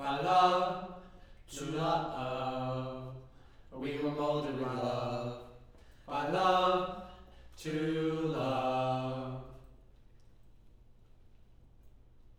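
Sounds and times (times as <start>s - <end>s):
low-mid choir singing in harmony: 0.0s - 9.6s.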